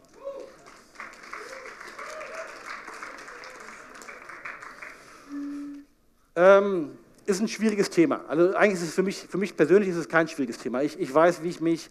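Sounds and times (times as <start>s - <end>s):
scattered cheering voices: 0.0s - 4.8s
audience applause: 0.0s - 5.3s
speech: 6.4s - 11.9s.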